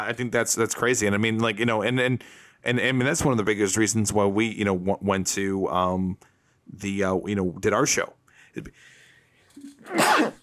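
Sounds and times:
speech: 0:00.0 - 0:08.9, 0:09.6 - 0:10.4
person coughing: 0:09.7 - 0:10.4.

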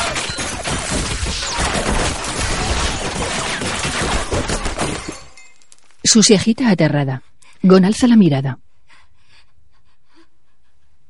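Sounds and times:
rapid gunfire volley in an action thriller film: 0:00.0 - 0:05.2
speech: 0:06.1 - 0:08.6.

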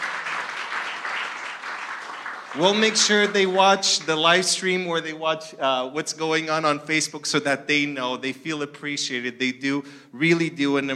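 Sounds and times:
crowd applause: 0:00.0 - 0:04.2
speech: 0:02.5 - 0:10.9.

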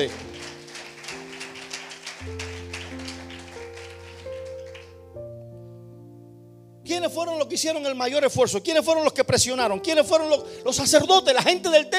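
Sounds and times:
speech: 0:00.0 - 0:00.3, 0:07.0 - 0:11.9
audience applause: 0:00.0 - 0:04.9.

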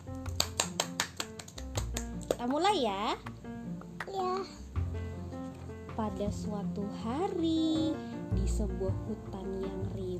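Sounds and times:
child clapping hands: 0:00.1 - 0:04.5
speech: 0:02.4 - 0:03.4, 0:04.1 - 0:04.6, 0:06.0 - 0:10.1.

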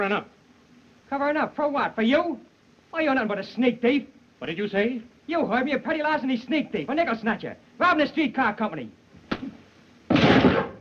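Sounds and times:
speech: 0:00.0 - 0:00.4, 0:01.1 - 0:09.5
punch sound effect in film: 0:10.1 - 0:10.7.

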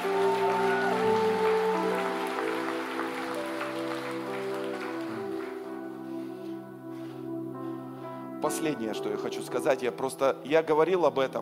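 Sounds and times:
audience applause: 0:00.0 - 0:05.8
speech: 0:08.4 - 0:11.3.

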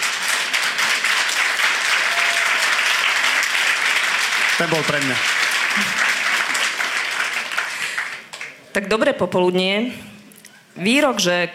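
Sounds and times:
audience applause: 0:00.0 - 0:08.6
speech: 0:04.6 - 0:06.1, 0:08.8 - 0:10.1, 0:10.8 - 0:11.5.

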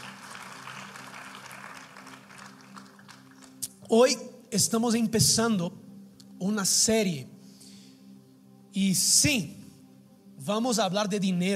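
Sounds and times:
audience applause: 0:00.0 - 0:03.7
speech: 0:03.9 - 0:05.8, 0:06.4 - 0:07.4, 0:08.8 - 0:09.6, 0:10.4 - 0:11.5.

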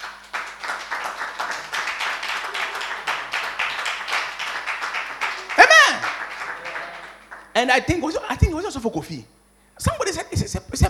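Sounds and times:
audience clapping: 0:00.0 - 0:07.6
speech: 0:07.6 - 0:10.8.

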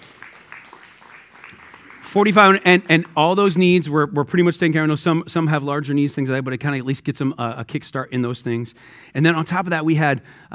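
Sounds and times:
audience applause: 0:00.0 - 0:03.4
speech: 0:02.1 - 0:10.5.

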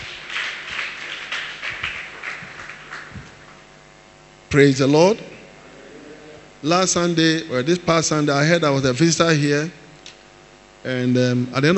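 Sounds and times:
audience clapping: 0:00.0 - 0:03.7
speech: 0:04.5 - 0:05.3, 0:06.6 - 0:09.8, 0:10.8 - 0:11.7.

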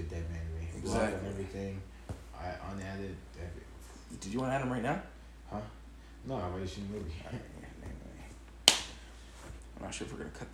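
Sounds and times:
speech: 0:00.8 - 0:07.7, 0:09.8 - 0:10.5
hand clap as editing marker: 0:08.7 - 0:09.1.

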